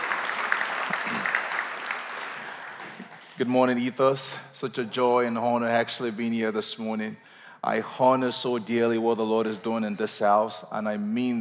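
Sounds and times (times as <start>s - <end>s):
church congregation applause: 0.0s - 4.1s
speech: 3.4s - 11.3s.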